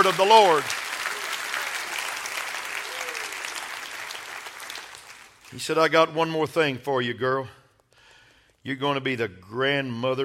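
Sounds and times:
speech: 0.0s - 0.8s, 5.5s - 7.6s, 8.6s - 10.2s
audience clapping hands: 0.0s - 5.9s.

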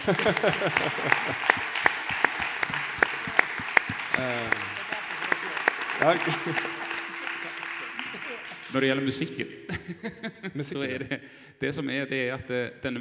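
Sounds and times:
speech: 0.0s - 1.7s, 4.2s - 4.7s, 6.0s - 6.8s, 8.7s - 12.9s
audience applause: 0.0s - 9.0s
laughter: 0.0s - 11.2s.

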